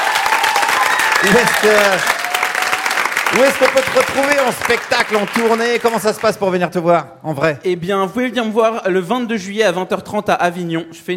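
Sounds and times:
audience applause: 0.0s - 6.4s
speech: 1.2s - 2.2s, 3.3s - 11.1s.

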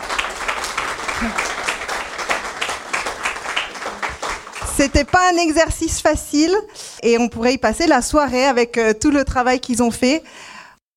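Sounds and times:
audience applause: 0.0s - 5.1s
speech: 1.2s - 1.5s, 4.8s - 10.6s.

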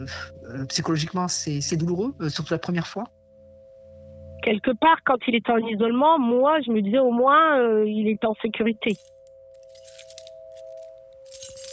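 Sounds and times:
speech: 0.0s - 3.2s, 4.4s - 9.2s
keys jangling and clinking: 8.9s - 11.7s.

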